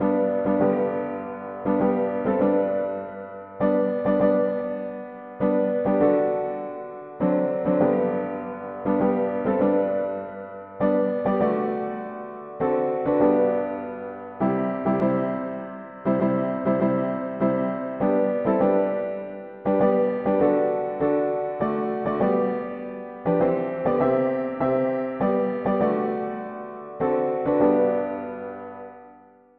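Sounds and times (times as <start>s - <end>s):
mono piano: 0.0s - 29.5s.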